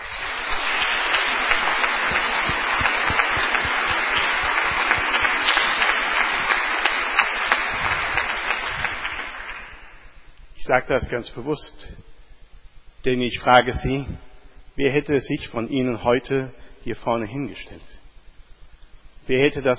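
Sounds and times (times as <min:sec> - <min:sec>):
audience applause: 0:00.0 - 0:10.2
speech: 0:10.7 - 0:12.1, 0:13.0 - 0:18.0, 0:19.3 - 0:19.7.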